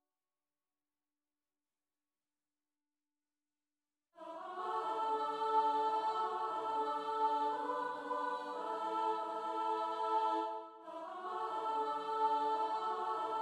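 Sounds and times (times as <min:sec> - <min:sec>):
soprano and alto voices: 0:04.2 - 0:13.4.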